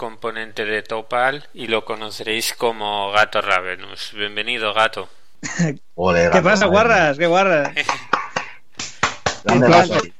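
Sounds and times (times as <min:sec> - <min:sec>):
speech: 0:00.0 - 0:08.1, 0:09.4 - 0:10.1
canned applause sound effect: 0:07.8 - 0:10.1.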